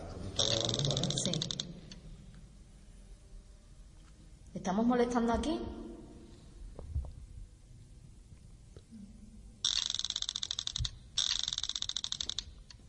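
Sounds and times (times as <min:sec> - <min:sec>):
Ghostmeter ghost meter device vibrating: 0:00.4 - 0:02.0, 0:09.6 - 0:12.8
speech: 0:04.7 - 0:05.8.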